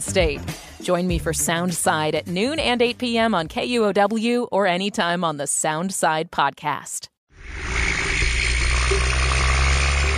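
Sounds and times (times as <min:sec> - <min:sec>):
speech: 0:00.0 - 0:07.1
logging trucks rumbling heard through water: 0:07.6 - 0:10.1.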